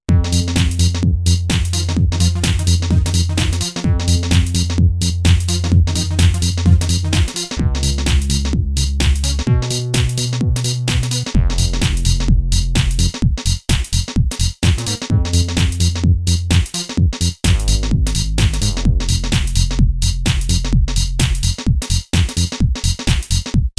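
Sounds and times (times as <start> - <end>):
garage music: 0.1 - 23.7.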